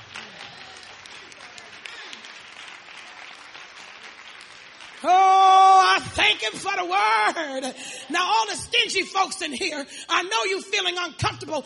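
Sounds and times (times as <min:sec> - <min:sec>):
audience clapping hands: 0:00.0 - 0:06.6
speech: 0:05.0 - 0:05.3, 0:06.0 - 0:11.6.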